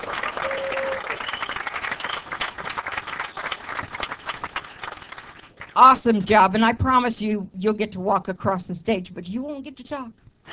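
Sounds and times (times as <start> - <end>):
convention audience applauding a newly promoted National Sales Director: 0.0 - 5.8
speech: 5.8 - 10.5.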